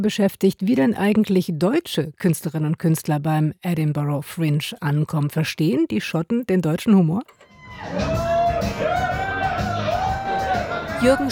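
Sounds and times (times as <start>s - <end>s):
speech: 0.0s - 9.7s, 11.0s - 11.2s
bar audience hooting and cheering: 7.4s - 11.2s.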